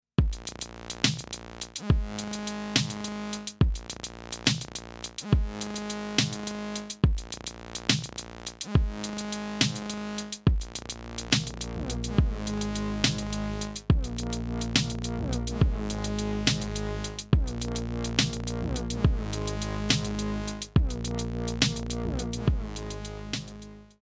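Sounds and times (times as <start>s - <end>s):
beat: 0.2s - 23.8s.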